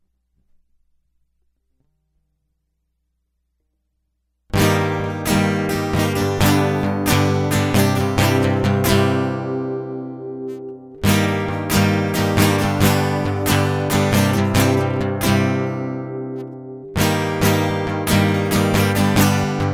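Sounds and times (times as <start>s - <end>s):
guitar loop: 4.5s - 19.7s.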